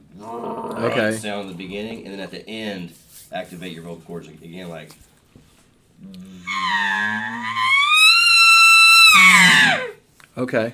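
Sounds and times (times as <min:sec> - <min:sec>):
speech: 0:00.2 - 0:05.1, 0:06.0 - 0:07.4, 0:10.4 - 0:10.7
elk bugle blown on a game call: 0:06.5 - 0:10.0.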